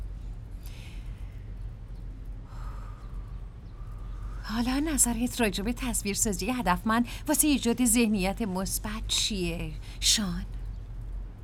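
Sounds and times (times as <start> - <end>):
low rumble: 0.0 - 11.4
deep breathing during a guided relaxation: 0.6 - 1.5, 2.4 - 4.5, 9.8 - 10.0
speech: 4.5 - 10.6.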